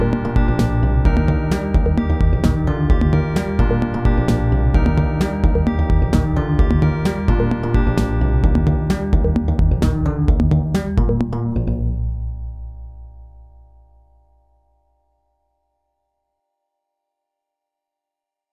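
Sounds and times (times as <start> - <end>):
bumbling sound: 0.0 - 14.3.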